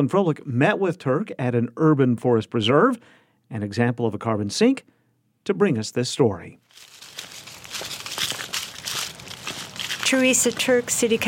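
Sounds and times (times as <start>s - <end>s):
speech: 0.0s - 7.3s, 10.1s - 11.2s
footsteps of a person and a black lab hiking into the deeply shaded Brooks Hummel Forest Preserve: 6.7s - 11.2s.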